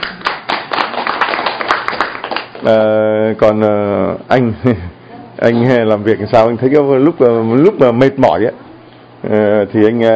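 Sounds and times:
audience applause: 0.0 - 2.6
speech: 2.6 - 8.6, 9.2 - 10.1.

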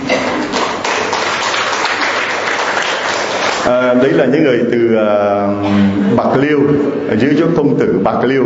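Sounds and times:
round of applause: 0.2 - 3.9
speech: 3.9 - 8.4.

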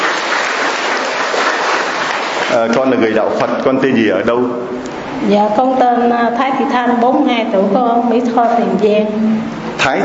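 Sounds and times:
church congregation applause greeting a Buddhist woman: 0.0 - 3.1
speech: 2.5 - 10.0.

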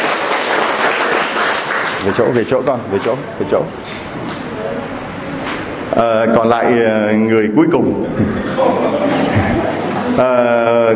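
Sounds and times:
church congregation applause: 0.0 - 2.5
speech: 2.0 - 4.4, 6.0 - 10.9
laughter: 8.0 - 10.4.

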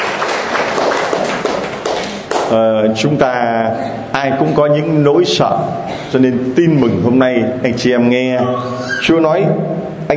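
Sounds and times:
audience applause: 0.0 - 2.4
speech: 2.5 - 10.1.

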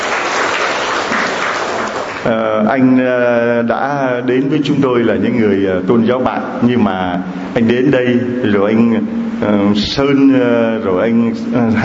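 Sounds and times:
congregation applauding to welcome a newcomer: 0.0 - 2.4
speech: 2.2 - 11.8.

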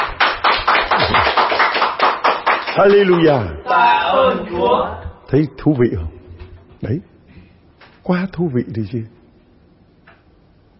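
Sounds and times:
church congregation clapping in a steady rhythm: 0.0 - 3.6
speech: 2.8 - 6.2, 6.8 - 7.1, 8.0 - 9.2.

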